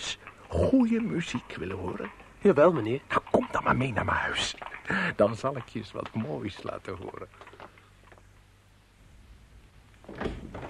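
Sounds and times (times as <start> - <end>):
speech: 0.5 - 7.5
door clicks and rattles: 10.0 - 10.6.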